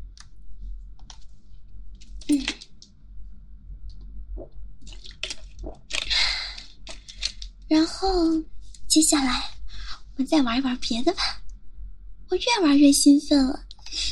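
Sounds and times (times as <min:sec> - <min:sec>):
person sipping water: 0:04.4 - 0:07.4
speech: 0:07.7 - 0:09.5, 0:10.2 - 0:11.4, 0:12.3 - 0:13.7.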